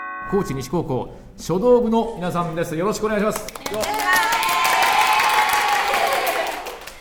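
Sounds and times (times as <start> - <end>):
speech: 0.3 - 4.4
audience applause: 3.3 - 6.9.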